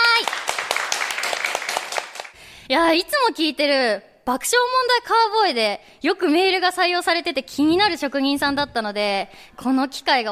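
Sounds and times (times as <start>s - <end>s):
brisk applause: 0.0s - 2.4s
speech: 2.7s - 10.3s.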